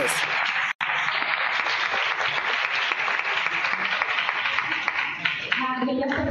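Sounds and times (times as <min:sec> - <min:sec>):
applause: 0:00.0 - 0:06.2.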